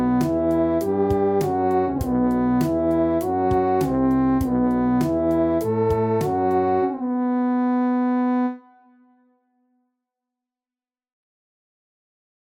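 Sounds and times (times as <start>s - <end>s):
brass French horn playing: 0.0s - 9.2s.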